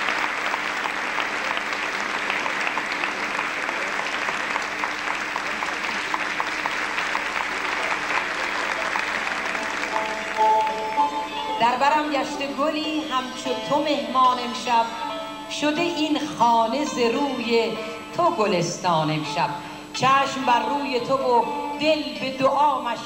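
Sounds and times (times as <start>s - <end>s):
applause in honour of a guest: 0.0s - 11.3s
speech: 11.8s - 23.0s.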